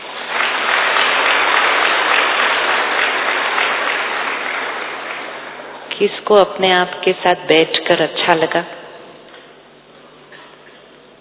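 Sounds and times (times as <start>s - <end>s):
audience clapping: 0.0s - 6.0s
speech: 6.0s - 8.8s.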